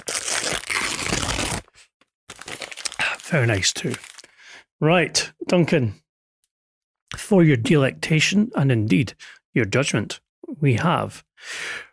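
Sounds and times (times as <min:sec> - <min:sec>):
golden envelope being torn open: 0:00.0 - 0:01.7, 0:02.3 - 0:04.2
speech: 0:03.3 - 0:04.1, 0:04.8 - 0:06.0, 0:07.3 - 0:11.9.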